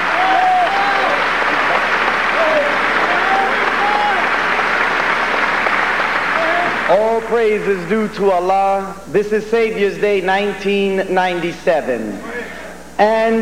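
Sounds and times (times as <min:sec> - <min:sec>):
faint shouts and whistles from audience: 0:00.0 - 0:04.4
large audience applause: 0:00.0 - 0:07.8
speech: 0:06.9 - 0:12.3, 0:13.0 - 0:13.4.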